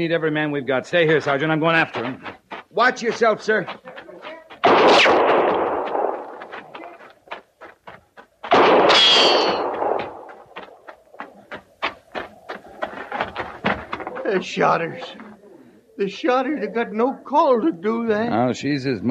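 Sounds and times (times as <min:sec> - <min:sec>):
speech: 0:00.0 - 0:03.8, 0:14.4 - 0:15.2, 0:16.0 - 0:19.0
gunshots in a radio drama shooting a horse: 0:04.6 - 0:06.9, 0:08.5 - 0:10.6.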